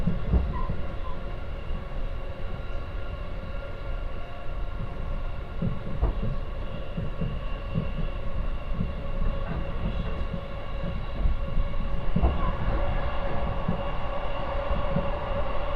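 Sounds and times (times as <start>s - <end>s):
rail joint clacks: 0.0s - 1.4s, 4.7s - 14.0s
train wheels rumbling on rails on the Kosei Line: 0.0s - 15.7s.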